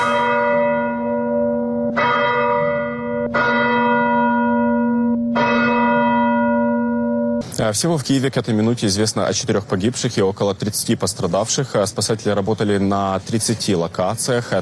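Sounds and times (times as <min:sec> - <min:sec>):
church bells ringing: 0:00.0 - 0:07.5
speech: 0:07.6 - 0:14.6.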